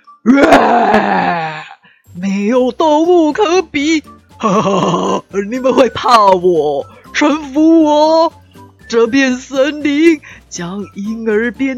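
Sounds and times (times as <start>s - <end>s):
speech: 0.2s - 11.7s
person imitating a lion's roar: 0.3s - 1.8s.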